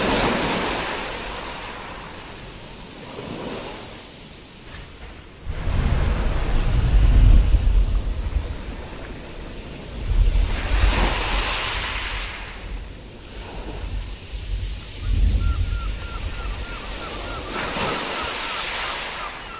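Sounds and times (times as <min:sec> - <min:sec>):
sea storm ocean waves: 0:00.0 - 0:19.5.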